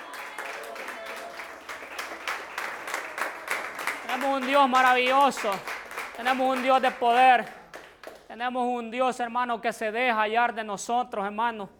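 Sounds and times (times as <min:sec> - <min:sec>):
audience clapping: 0:00.0 - 0:08.3
speech: 0:04.2 - 0:07.6, 0:08.4 - 0:11.7.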